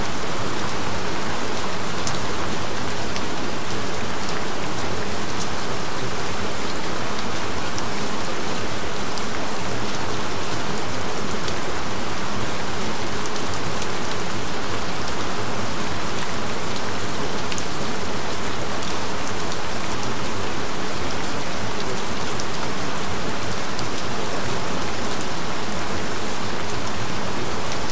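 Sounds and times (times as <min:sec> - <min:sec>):
gentle rain: 0:00.0 - 0:27.9.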